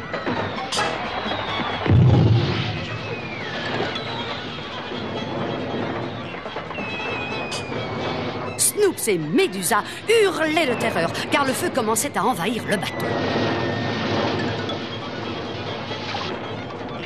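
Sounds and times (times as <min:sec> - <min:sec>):
fireworks rockets whistling and bursting: 0:00.1 - 0:16.9
deep heavy boom: 0:01.8 - 0:04.2
speech: 0:09.0 - 0:13.4.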